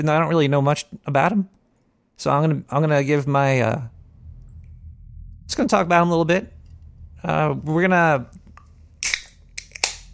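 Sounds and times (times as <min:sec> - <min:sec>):
speech: 0:00.0 - 0:01.6, 0:02.2 - 0:04.0, 0:05.5 - 0:06.6, 0:07.2 - 0:08.4
beer can being cracked open: 0:09.0 - 0:10.1.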